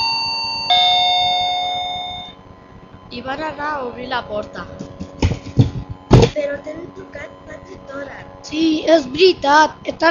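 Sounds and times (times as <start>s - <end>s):
doorbell chime: 0.0s - 2.4s
speech: 3.2s - 4.8s, 6.4s - 10.1s.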